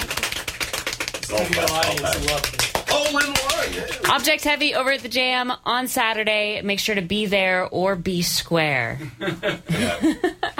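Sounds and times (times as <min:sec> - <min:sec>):
crowd clapping: 0:00.0 - 0:04.6
speech: 0:01.3 - 0:10.5
laughter: 0:09.0 - 0:10.5.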